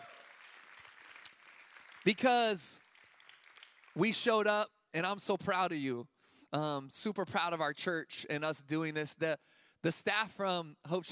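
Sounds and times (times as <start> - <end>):
audience applauding: 0.0 - 4.2
speech: 2.0 - 2.8, 4.0 - 11.0.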